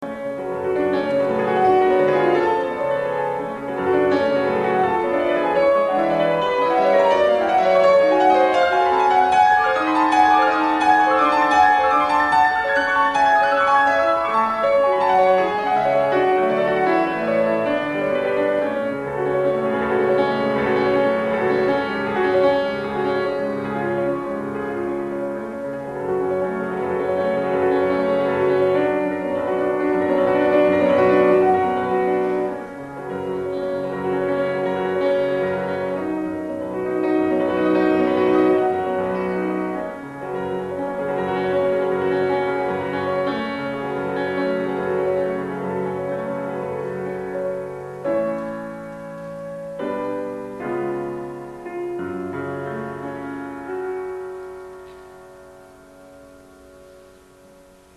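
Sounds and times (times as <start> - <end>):
prelude in F minor molto agitato: 0.0 - 56.4.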